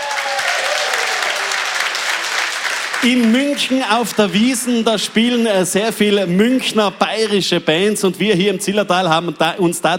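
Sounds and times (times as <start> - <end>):
large crowd applause in packed festival tent: 0.0 - 5.4
speech: 3.0 - 9.9.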